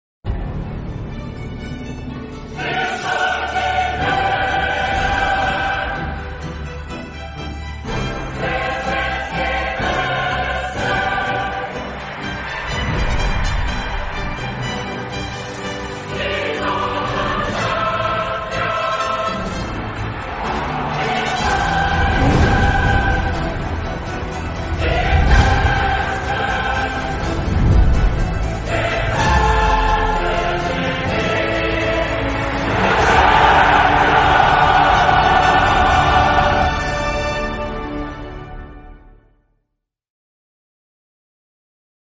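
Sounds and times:
anthem music: 0:00.3 - 0:39.4.

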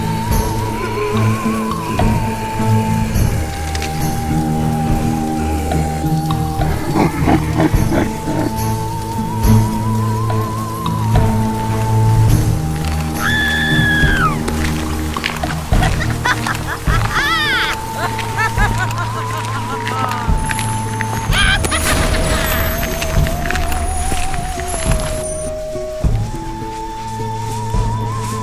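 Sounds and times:
Halloween background music: 0:00.0 - 0:28.4
laughter: 0:00.6 - 0:08.6, 0:13.2 - 0:24.0.

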